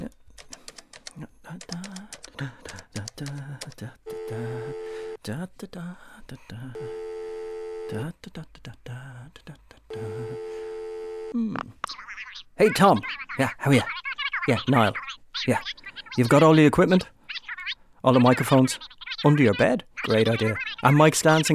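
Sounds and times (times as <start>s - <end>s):
phone keypad tapping: 0.3s - 3.8s
telephone ringing tone: 4.1s - 5.2s, 6.8s - 8.0s, 9.9s - 11.4s
speech: 5.3s - 7.1s, 7.9s - 10.5s, 11.3s - 17.2s, 18.0s - 21.5s.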